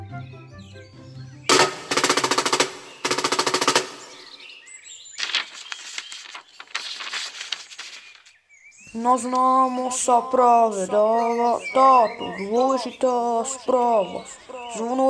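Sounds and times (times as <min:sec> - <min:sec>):
town crier's drum roll: 0:01.5 - 0:04.4
speech: 0:08.9 - 0:15.0.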